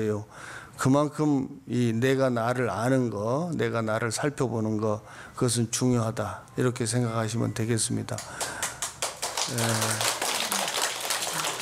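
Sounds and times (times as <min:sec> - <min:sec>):
speech: 0:00.0 - 0:08.6, 0:09.5 - 0:10.2
audience applause: 0:08.3 - 0:11.6.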